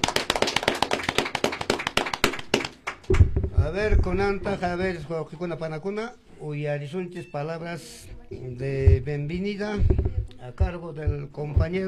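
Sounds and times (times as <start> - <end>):
applause from audience: 0.0 - 3.2
speech: 3.7 - 11.8.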